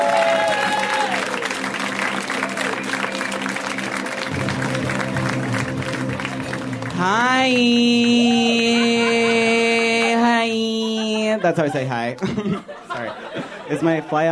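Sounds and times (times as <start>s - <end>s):
audience clapping and cheering: 0.0s - 12.3s
walk-on music: 0.4s - 11.1s
speech: 7.0s - 8.3s, 11.4s - 14.2s
laughter: 8.1s - 14.2s.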